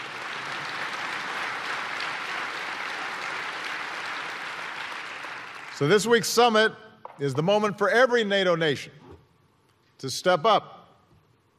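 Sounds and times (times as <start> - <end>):
audience applause: 0.0 - 5.8
speech: 5.8 - 9.0, 10.0 - 10.8.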